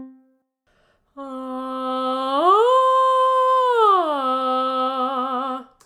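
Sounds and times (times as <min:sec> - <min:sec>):
person doing vocal exercises: 0:01.1 - 0:05.8.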